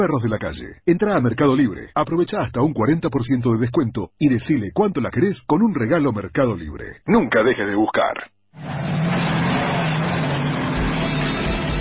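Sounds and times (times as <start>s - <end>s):
speech: 0.0s - 9.0s
car engine revving: 8.6s - 11.8s.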